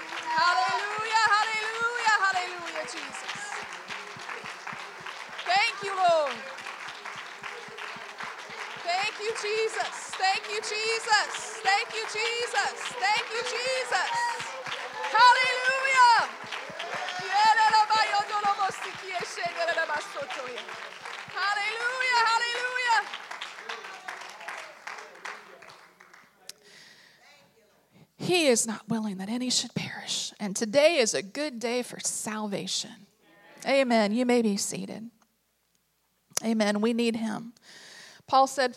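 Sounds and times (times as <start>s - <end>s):
audience clapping hands: 0.0s - 26.8s
speech: 9.4s - 16.4s, 18.9s - 23.2s, 28.3s - 35.2s, 36.4s - 38.7s.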